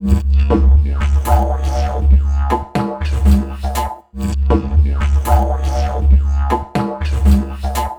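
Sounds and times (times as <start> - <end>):
ethnic instruments loop: 0.0 - 7.9.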